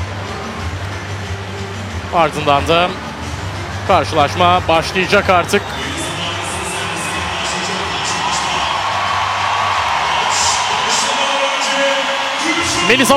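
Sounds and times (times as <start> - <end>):
thirteen thousand spectators applauding in Ankara Sports Hall before a volleyball match: 0.0 - 13.1
speech: 2.1 - 3.0, 3.9 - 5.9, 12.9 - 13.1
crowd whoops and cheers: 5.6 - 13.1.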